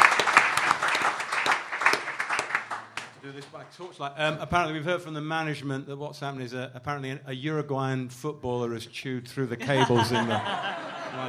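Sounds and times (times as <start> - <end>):
audience applause: 0.0 - 3.6
speech: 3.3 - 11.2
laughter: 9.6 - 11.2.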